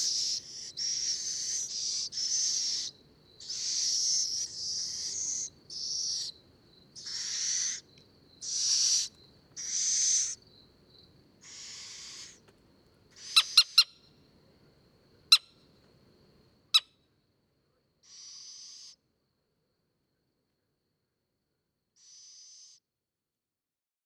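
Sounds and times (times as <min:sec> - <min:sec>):
little owl Athene noctua calling: 0:00.0 - 0:06.4, 0:07.0 - 0:10.4, 0:11.4 - 0:12.4, 0:13.2 - 0:14.0, 0:18.0 - 0:19.0, 0:22.0 - 0:22.8.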